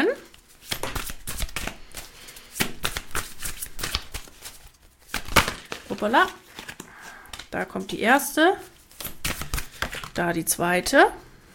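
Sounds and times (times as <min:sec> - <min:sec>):
shuffling a deck of soul cards by hand: 0:00.3 - 0:07.5, 0:08.9 - 0:10.2
speech: 0:06.0 - 0:06.4, 0:07.5 - 0:08.7, 0:10.2 - 0:11.2.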